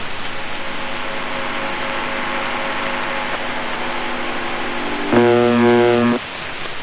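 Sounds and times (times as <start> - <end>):
USB message buzzer: 1.1 - 6.2.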